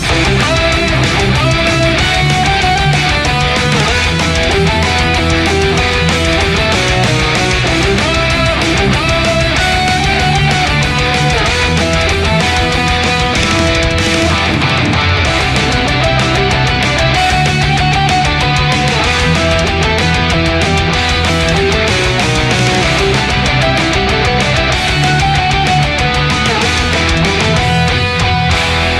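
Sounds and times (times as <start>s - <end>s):
metal music: 0.0s - 28.9s.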